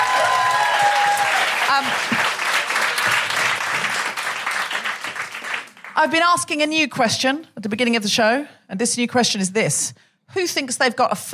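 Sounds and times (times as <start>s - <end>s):
cheers: 0.0s - 3.5s
audience applause: 0.0s - 6.0s
speech: 1.7s - 2.4s, 6.0s - 11.3s.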